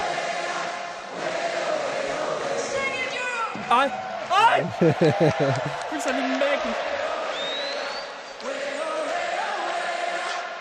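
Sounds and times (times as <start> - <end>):
concert audience singing along in a hall: 0.0 - 3.7, 6.5 - 10.5
speech: 3.6 - 7.1
laughter: 4.3 - 6.7.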